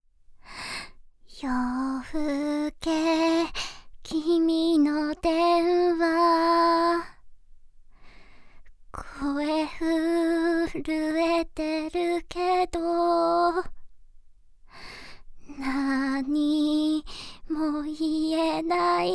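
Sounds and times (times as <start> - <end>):
Japanese a cappella song: 1.3 - 7.2, 9.0 - 13.8, 15.5 - 19.1.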